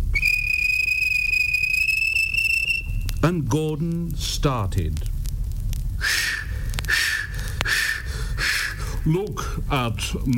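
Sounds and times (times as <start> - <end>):
railway guard blowing a whistle: 0.0 - 3.1, 6.0 - 8.8
speech: 3.2 - 5.2, 9.0 - 10.3.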